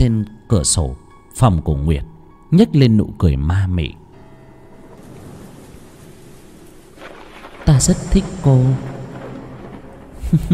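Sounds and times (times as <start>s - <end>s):
speech: 0.0s - 4.0s, 7.7s - 8.9s, 10.3s - 10.5s
heavy steady rain: 4.7s - 10.5s.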